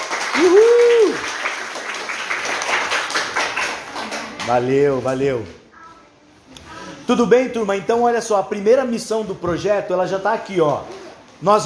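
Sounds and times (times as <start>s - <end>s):
audience applause: 0.0s - 5.0s
speech: 0.4s - 1.3s, 4.5s - 5.6s, 7.1s - 11.6s.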